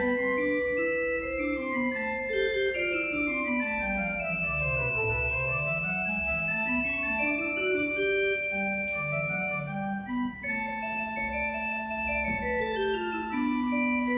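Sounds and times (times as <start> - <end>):
organ playing a psalm in Assen: 0.0 - 14.1.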